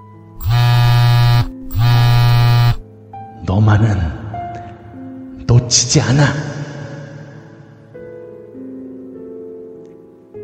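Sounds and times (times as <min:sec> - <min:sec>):
mobile phone ringing: 0:00.4 - 0:02.8
speech: 0:03.5 - 0:04.2, 0:05.5 - 0:06.6.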